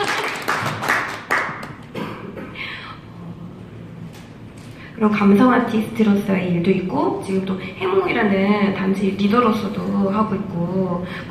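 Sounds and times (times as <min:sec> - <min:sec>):
light round of applause: 0:00.0 - 0:01.9
speech: 0:05.0 - 0:11.2.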